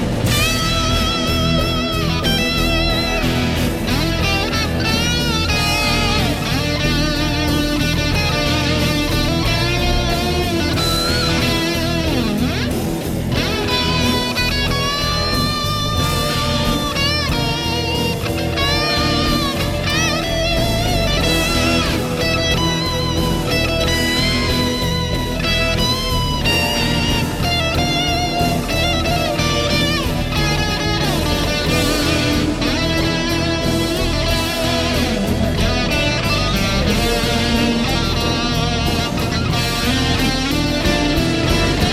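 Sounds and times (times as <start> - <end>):
guitar solo through a Boss CS2: 0.2 - 41.9.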